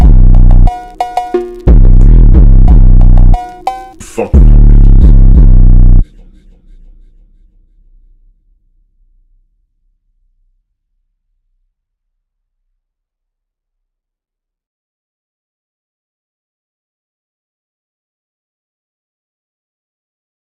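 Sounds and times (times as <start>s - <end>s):
phonk with hard boosted bass: 0.0s - 6.7s.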